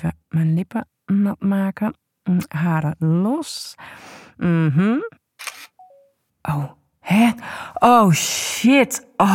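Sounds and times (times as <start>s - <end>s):
speech: 0.0s - 5.2s, 6.4s - 9.3s
phone camera shutter click: 5.4s - 5.8s.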